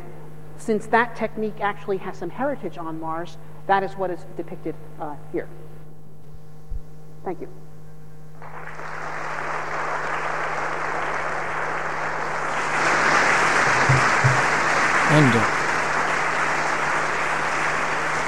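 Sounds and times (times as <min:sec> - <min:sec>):
speech: 0:00.6 - 0:05.6, 0:07.2 - 0:07.6, 0:15.1 - 0:15.6
audience applause after lecture: 0:08.4 - 0:18.2.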